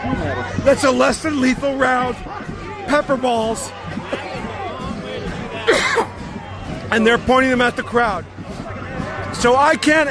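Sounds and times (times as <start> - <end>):
speech: 0.1 - 4.2, 6.9 - 8.3, 9.4 - 10.0
person coughing: 5.7 - 6.1.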